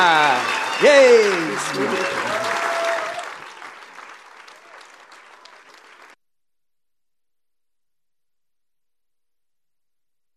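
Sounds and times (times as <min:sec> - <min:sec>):
audience applause welcoming a pastor: 0:00.0 - 0:06.2
speech: 0:00.8 - 0:02.3.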